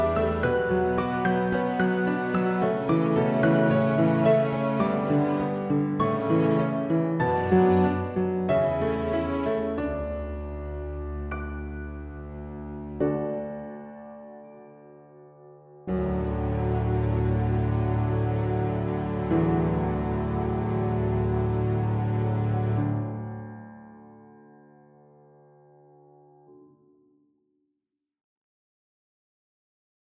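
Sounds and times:
orchestral music: 0.0s - 13.3s, 15.9s - 23.0s.

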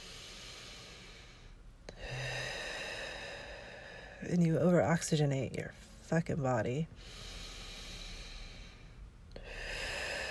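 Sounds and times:
deep breathing exercise: 0.0s - 4.3s, 6.9s - 10.2s
speech: 4.2s - 7.3s.

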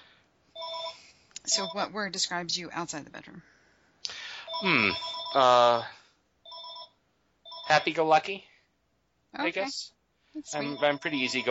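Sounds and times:
electronic telephone ring: 0.5s - 1.8s, 4.5s - 5.6s, 6.5s - 8.0s, 10.6s - 11.4s
speech: 1.5s - 3.6s, 4.6s - 6.0s, 7.7s - 8.5s, 9.3s - 11.4s.

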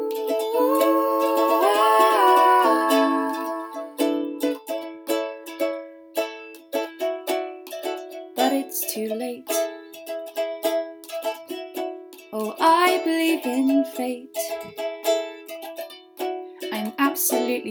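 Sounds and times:
person singing a cover: 0.0s - 4.9s, 8.4s - 9.7s, 12.3s - 14.7s, 16.6s - 17.6s
ukulele: 0.0s - 17.6s.

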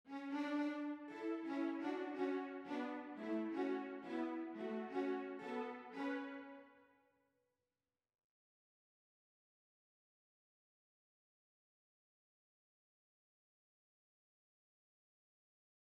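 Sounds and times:
string cellos playing: 0.1s - 6.5s.

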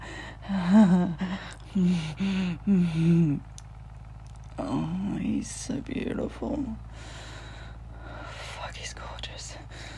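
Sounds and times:
man panting: 0.0s - 3.1s, 6.9s - 8.3s
speech: 1.8s - 3.6s, 4.6s - 7.2s.

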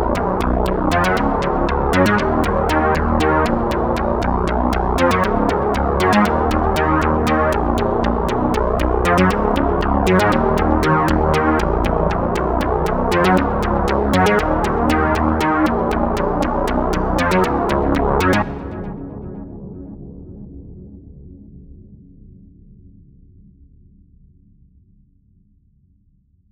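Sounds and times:
bass synth: 0.0s - 20.2s.

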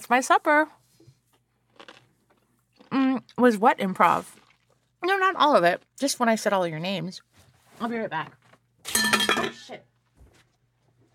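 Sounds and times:
speech: 0.0s - 0.8s, 2.9s - 4.4s, 5.0s - 9.9s
wet chewing crunches: 1.3s - 6.4s
crunchy bite into a pickle: 1.7s - 3.3s.

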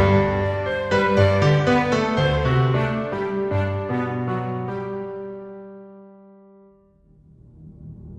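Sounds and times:
orchestral music: 0.0s - 5.9s.

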